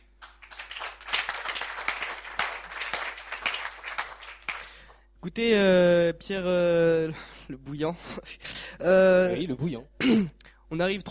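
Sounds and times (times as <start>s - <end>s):
audience applause: 0.2s - 4.8s
speech: 5.2s - 11.0s.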